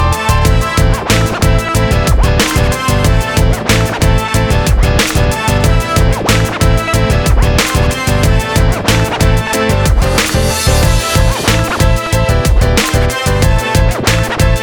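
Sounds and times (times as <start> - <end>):
motivational hip hop rap beat instrumental background music: 0.0 - 14.6.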